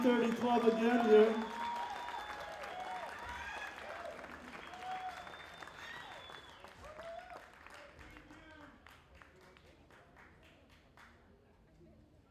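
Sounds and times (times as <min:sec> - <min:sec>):
speech: 0:00.0 - 0:01.6
audience applause: 0:00.0 - 0:09.6.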